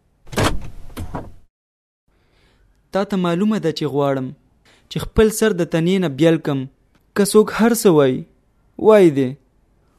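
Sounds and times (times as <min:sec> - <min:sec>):
window being shut with a scraping slide: 0:00.2 - 0:01.4
speech: 0:02.9 - 0:09.4.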